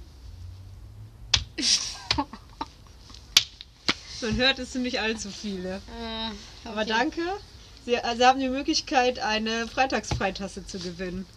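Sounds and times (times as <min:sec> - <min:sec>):
speech: 0:01.6 - 0:02.4, 0:04.2 - 0:11.3
laughter: 0:01.6 - 0:03.2
scattered hand claps from a tiny audience: 0:03.3 - 0:04.0.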